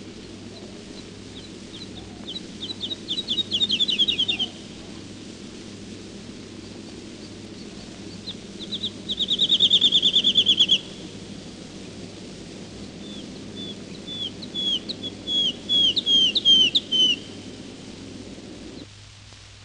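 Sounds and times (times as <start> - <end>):
woodlark bird: 0.0 - 5.2, 6.3 - 17.8.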